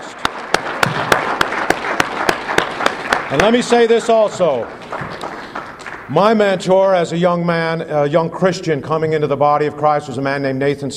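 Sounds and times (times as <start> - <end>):
congregation clapping in a steady rhythm: 0.0 - 6.7
speech: 3.3 - 4.8, 6.1 - 10.9.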